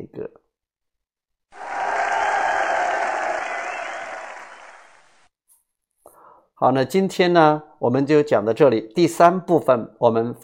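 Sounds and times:
speech: 0.0s - 0.4s, 6.6s - 10.4s
applause and cheering: 1.6s - 5.2s.

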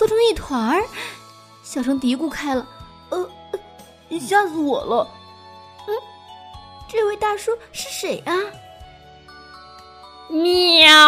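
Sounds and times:
speech: 0.3s - 1.1s, 1.7s - 3.3s, 4.1s - 5.2s, 6.9s - 8.6s, 10.3s - 11.0s
person imitating a cat meow: 10.3s - 11.0s.

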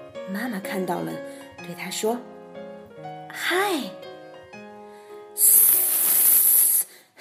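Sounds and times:
speech: 0.3s - 2.4s, 3.4s - 4.1s
voice imitating a hiss: 5.4s - 7.0s.

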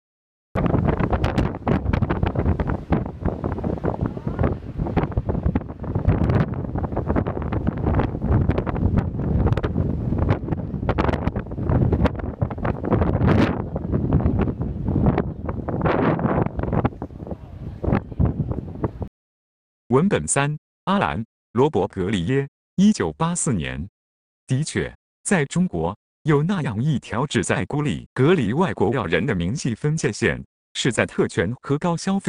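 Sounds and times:
strong wind on a station square: 0.6s - 19.1s
speech: 20.0s - 23.9s, 24.5s - 32.2s.

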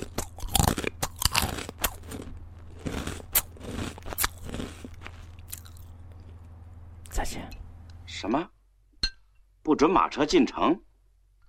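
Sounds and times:
potato chip being bitten and chewed: 0.0s - 6.4s
speech: 7.3s - 7.6s, 8.2s - 8.6s, 9.7s - 10.9s.

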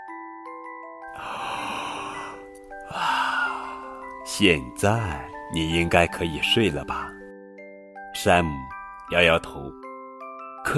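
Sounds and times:
voice imitating a yawn: 1.1s - 4.0s
speech: 4.3s - 7.2s, 8.2s - 9.8s.

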